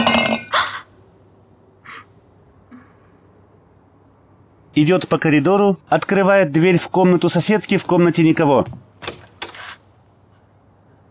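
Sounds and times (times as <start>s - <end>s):
glass three-liter jar knocked over and dropped: 0.0s - 0.6s
speech: 4.8s - 9.2s.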